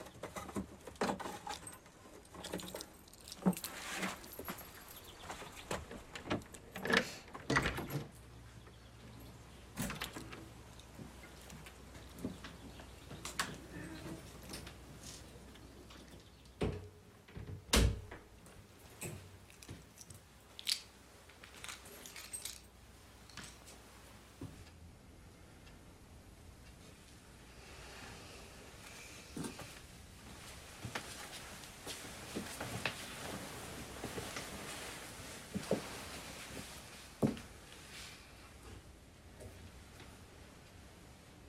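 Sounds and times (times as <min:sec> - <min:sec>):
keys jingling: 0:01.4 - 0:05.7, 0:21.5 - 0:22.7
low hiss: 0:01.4 - 0:41.4.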